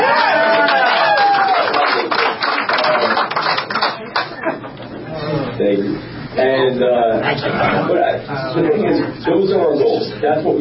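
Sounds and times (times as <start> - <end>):
audience applauding: 0.0 - 4.6
laughter: 3.8 - 5.5, 7.1 - 9.5
speech: 5.7 - 10.5.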